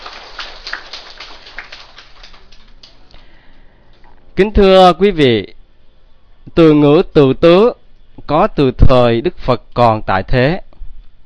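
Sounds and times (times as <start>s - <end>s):
audience applause: 0.0s - 3.1s
speech: 4.4s - 5.6s, 6.6s - 10.6s.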